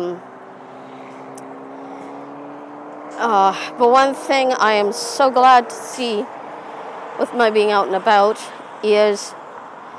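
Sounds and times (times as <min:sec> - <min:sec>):
speech: 0:00.0 - 0:00.3, 0:03.2 - 0:06.4, 0:07.2 - 0:09.4
road noise inside a moving car: 0:00.0 - 0:09.9.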